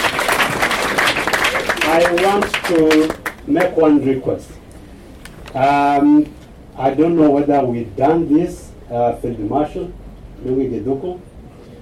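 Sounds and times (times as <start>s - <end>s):
audience clapping: 0.0s - 3.8s
speech: 1.9s - 4.6s, 5.5s - 11.3s.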